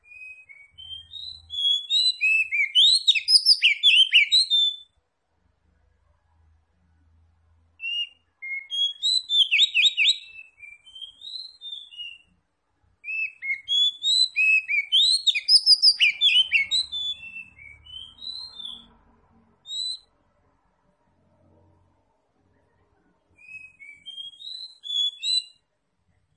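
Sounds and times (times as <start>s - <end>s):
Oriental magpie-robin song: 0.0s - 4.9s, 7.8s - 12.4s, 13.0s - 19.0s, 19.6s - 20.1s, 23.4s - 25.6s.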